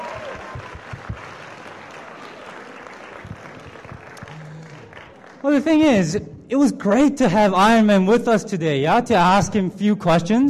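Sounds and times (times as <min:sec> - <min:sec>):
audience applause: 0:00.0 - 0:06.0
speech: 0:05.4 - 0:10.4.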